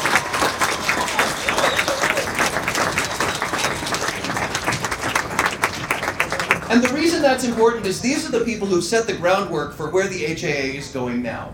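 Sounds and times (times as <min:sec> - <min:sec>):
crowd applause: 0:00.0 - 0:08.4
speech: 0:06.7 - 0:11.5.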